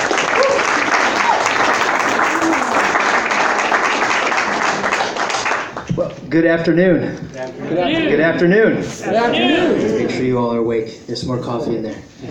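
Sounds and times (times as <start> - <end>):
round of applause: 0.0 - 5.9
speech: 6.3 - 12.2.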